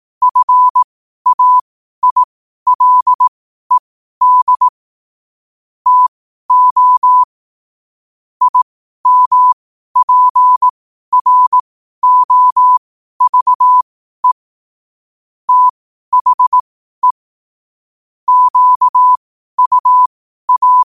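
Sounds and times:
morse code at 5 wpm: 0:00.2 - 0:04.7, 0:05.9 - 0:07.3, 0:08.4 - 0:14.4, 0:15.5 - 0:17.2, 0:18.3 - 0:20.9.

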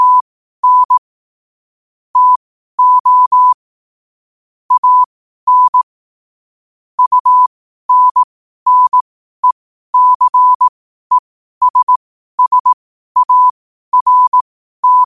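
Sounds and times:
morse code at 5 wpm: 0:00.0 - 0:01.0, 0:02.2 - 0:03.6, 0:04.7 - 0:05.9, 0:07.0 - 0:15.0.

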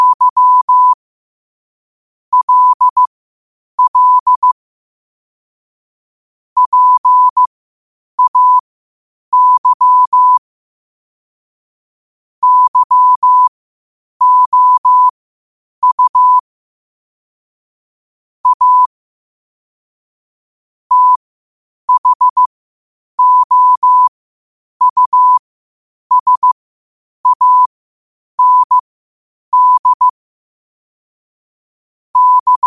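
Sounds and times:
morse code at 5 wpm: 0:00.0 - 0:01.0, 0:02.3 - 0:03.1, 0:03.8 - 0:04.6, 0:06.6 - 0:07.5, 0:08.2 - 0:08.6, 0:09.3 - 0:10.4, 0:12.4 - 0:13.5, 0:14.2 - 0:15.1, 0:15.8 - 0:16.4, 0:18.4 - 0:18.9, 0:20.9 - 0:21.2, 0:21.9 - 0:22.5, 0:23.2 - 0:24.1, 0:24.8 - 0:25.4, 0:26.1 - 0:26.6, 0:27.2 - 0:27.7, 0:28.4 - 0:28.8, 0:29.5 - 0:30.2, 0:32.2 - 0:32.6.

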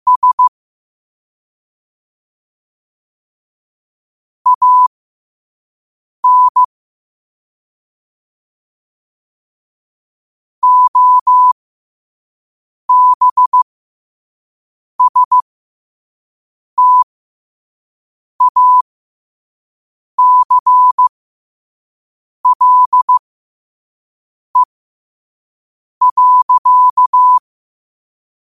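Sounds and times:
morse code at 5 wpm: 0:00.1 - 0:00.5, 0:04.5 - 0:04.9, 0:06.2 - 0:06.7, 0:10.6 - 0:11.6, 0:12.9 - 0:13.6, 0:15.0 - 0:15.4, 0:16.8 - 0:17.0, 0:18.4 - 0:18.8, 0:20.2 - 0:21.1, 0:22.4 - 0:23.2, 0:26.0 - 0:27.4.

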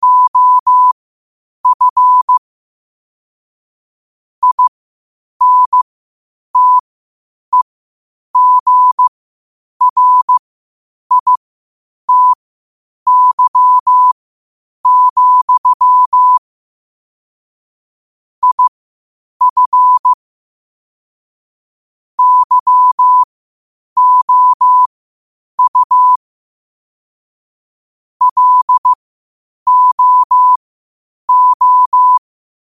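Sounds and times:
morse code at 5 wpm: 0:00.0 - 0:01.0, 0:01.6 - 0:02.4, 0:04.4 - 0:04.7, 0:05.4 - 0:05.8, 0:06.6 - 0:06.8, 0:08.4 - 0:09.1, 0:09.8 - 0:10.4, 0:11.1 - 0:11.4, 0:12.1 - 0:12.4, 0:13.1 - 0:14.2, 0:14.8 - 0:16.4, 0:18.4 - 0:18.7, 0:19.4 - 0:20.2, 0:22.2 - 0:23.3, 0:24.0 - 0:24.9, 0:25.6 - 0:26.2, 0:28.2 - 0:29.0, 0:29.7 - 0:30.6, 0:31.3 - 0:32.2.

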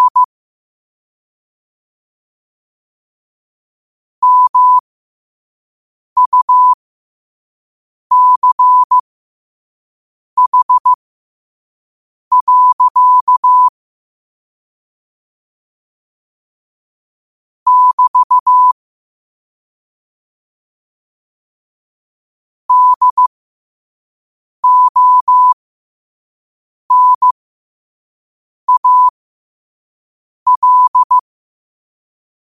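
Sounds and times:
morse code at 5 wpm: 0:00.0 - 0:00.3, 0:04.2 - 0:04.8, 0:06.2 - 0:06.8, 0:08.1 - 0:09.0, 0:10.4 - 0:11.0, 0:12.3 - 0:13.7, 0:17.7 - 0:18.8, 0:22.7 - 0:23.3, 0:24.6 - 0:25.6, 0:26.9 - 0:27.4, 0:28.7 - 0:29.1, 0:30.5 - 0:31.3.

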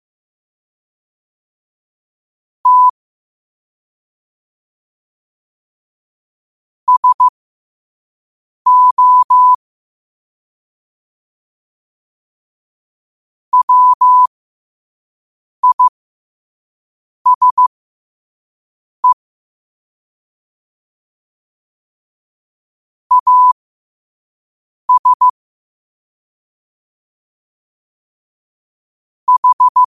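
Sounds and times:
morse code at 5 wpm: 0:02.7 - 0:03.0, 0:06.9 - 0:07.3, 0:08.7 - 0:09.6, 0:13.6 - 0:14.3, 0:15.6 - 0:15.9, 0:17.3 - 0:17.7, 0:23.1 - 0:23.6, 0:24.9 - 0:25.4, 0:29.3 - 0:29.9.

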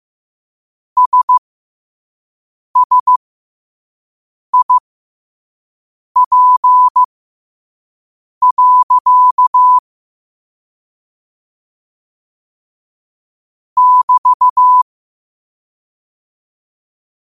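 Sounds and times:
morse code at 5 wpm: 0:01.0 - 0:01.4, 0:02.8 - 0:03.2, 0:04.6 - 0:04.8, 0:06.2 - 0:07.1, 0:08.4 - 0:09.8, 0:13.8 - 0:14.8.

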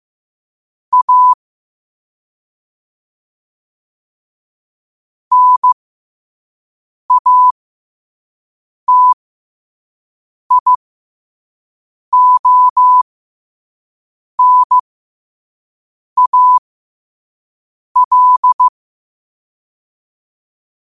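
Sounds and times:
morse code at 5 wpm: 0:00.9 - 0:01.4, 0:05.3 - 0:05.8, 0:07.1 - 0:07.5, 0:08.9 - 0:09.2, 0:10.5 - 0:10.8, 0:12.2 - 0:13.0, 0:14.4 - 0:14.8, 0:16.2 - 0:16.6, 0:18.0 - 0:18.7.

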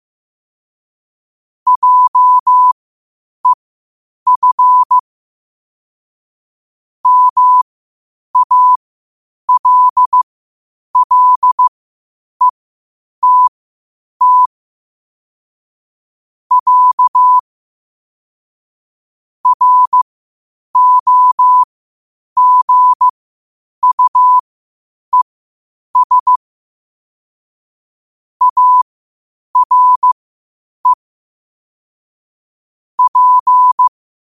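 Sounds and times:
morse code at 5 wpm: 0:01.7 - 0:02.8, 0:04.3 - 0:05.0, 0:07.0 - 0:07.6, 0:08.4 - 0:08.8, 0:09.5 - 0:10.2, 0:11.0 - 0:11.7, 0:13.2 - 0:13.5, 0:14.2 - 0:14.5, 0:16.5 - 0:17.4, 0:19.4 - 0:20.0, 0:20.8 - 0:21.7, 0:22.4 - 0:23.1, 0:23.8 - 0:24.4, 0:26.0 - 0:26.4, 0:28.4 - 0:28.8, 0:29.6 - 0:30.2, 0:33.0 - 0:33.9.

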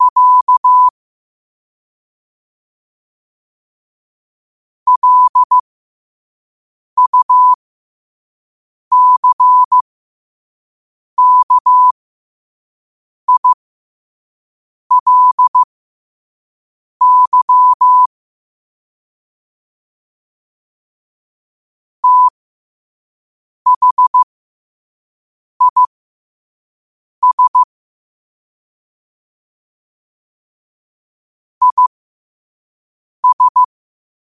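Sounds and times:
morse code at 5 wpm: 0:00.0 - 0:00.9, 0:04.9 - 0:05.6, 0:07.0 - 0:07.6, 0:08.9 - 0:09.8, 0:11.2 - 0:11.9, 0:13.3 - 0:13.6, 0:14.9 - 0:15.7, 0:17.0 - 0:18.1, 0:22.0 - 0:22.4, 0:23.7 - 0:24.3, 0:25.6 - 0:25.9, 0:27.2 - 0:27.7, 0:31.6 - 0:31.9, 0:33.2 - 0:33.7.

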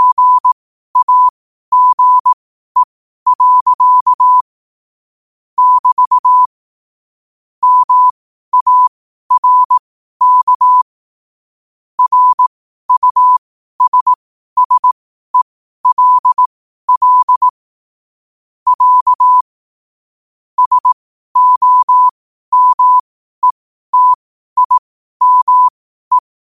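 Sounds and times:
morse code at 5 wpm: 0:00.0 - 0:04.4, 0:05.6 - 0:06.5, 0:07.6 - 0:10.9, 0:12.0 - 0:15.0, 0:15.8 - 0:17.6, 0:18.7 - 0:19.4, 0:20.6 - 0:26.2.

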